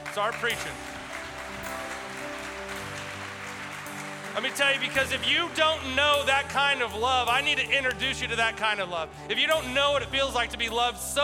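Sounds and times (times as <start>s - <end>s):
audience clapping: 0.0s - 8.0s
speech: 0.2s - 1.0s, 4.4s - 11.2s.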